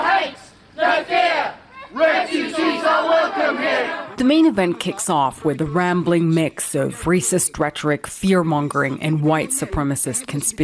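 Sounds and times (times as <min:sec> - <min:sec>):
loud crowd chanting and yelling in protest: 0:00.0 - 0:04.2
speech: 0:03.3 - 0:10.6.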